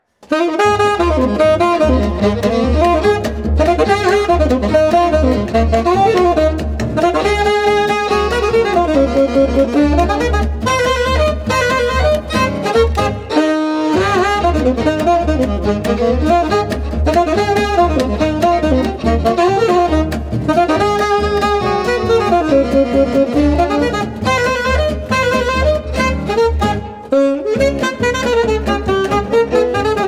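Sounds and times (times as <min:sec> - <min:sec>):
saxophone music: 0:00.2 - 0:30.0.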